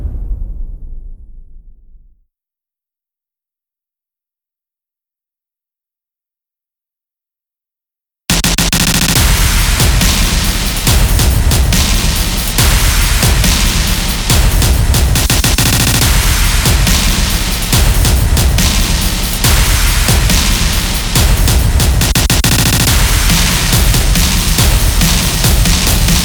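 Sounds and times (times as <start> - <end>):
percussion: 8.3 - 26.2.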